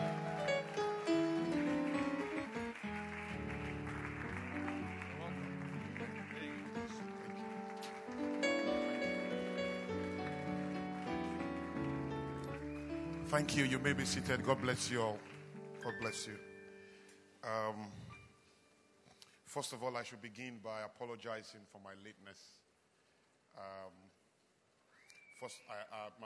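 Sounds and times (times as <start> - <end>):
audience clapping: 0.0 - 16.4
speech: 13.3 - 16.5, 17.4 - 18.0, 19.6 - 22.6, 23.6 - 24.2, 25.4 - 26.2.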